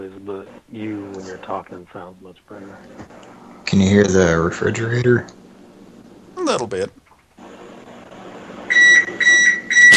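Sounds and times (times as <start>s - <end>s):
speech: 0.2s - 5.4s, 6.4s - 7.0s
oven beeping while preheating: 8.7s - 9.9s.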